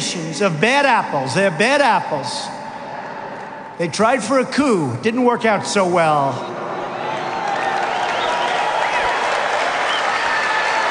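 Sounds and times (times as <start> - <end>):
speech: 0.2 - 2.6, 3.8 - 6.6
rally crowd cheering and applauding: 6.6 - 10.8.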